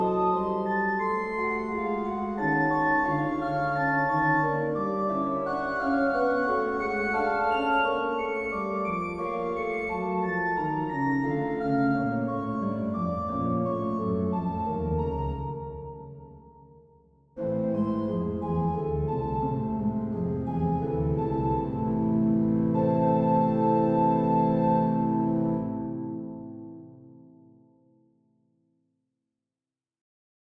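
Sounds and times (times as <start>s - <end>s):
organ: 0.0s - 15.1s, 17.4s - 26.4s.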